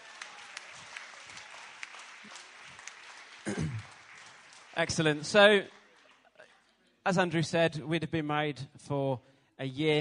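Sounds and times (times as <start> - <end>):
audience applause: 0.0 - 6.5
speech: 3.4 - 3.9, 4.8 - 5.8, 7.1 - 9.9.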